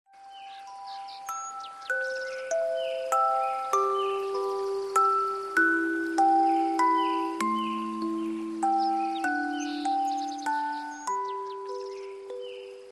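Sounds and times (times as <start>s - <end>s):
priestess lullaby: 0.1s - 12.8s.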